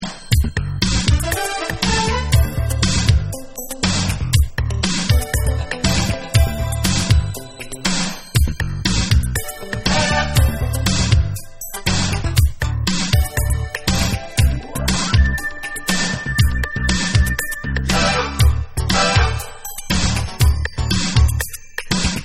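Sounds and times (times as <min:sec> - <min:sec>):
playback backing beats: 0:00.0 - 0:21.6.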